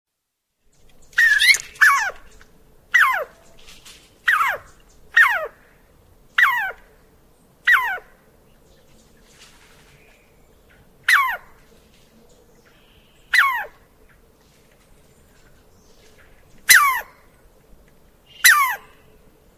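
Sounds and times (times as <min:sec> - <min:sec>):
faint steady background hum: 0:00.2 - 0:19.5
squirrel barking calls: 0:01.0 - 0:03.5, 0:04.2 - 0:05.6, 0:06.3 - 0:06.9, 0:07.6 - 0:08.2, 0:10.7 - 0:11.6, 0:12.7 - 0:14.0, 0:16.6 - 0:17.4, 0:18.2 - 0:19.2.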